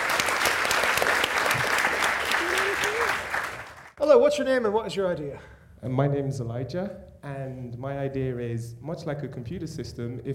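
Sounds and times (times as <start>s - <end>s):
audience applause: 0.0s - 3.9s
speech: 4.1s - 10.3s.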